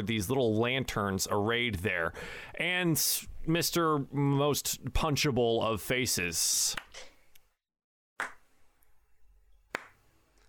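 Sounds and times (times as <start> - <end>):
speech: 0.0 - 7.1
slow hand claps: 8.2 - 8.4, 9.7 - 10.0.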